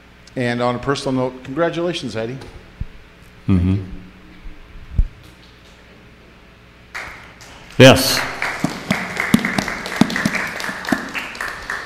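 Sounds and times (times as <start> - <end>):
speech: 0.4 - 2.6, 3.5 - 4.0, 7.8 - 8.3
audience applause: 7.0 - 11.8.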